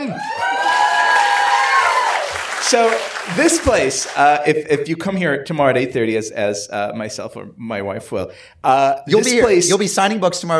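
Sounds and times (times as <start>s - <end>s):
crowd cheering with whoops and high shouts: 0.0s - 4.5s
speech: 2.7s - 10.5s.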